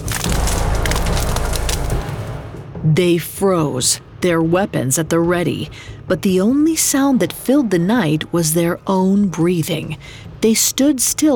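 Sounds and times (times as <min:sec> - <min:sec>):
branches cracking: 0:00.0 - 0:02.5
speech: 0:02.8 - 0:11.3.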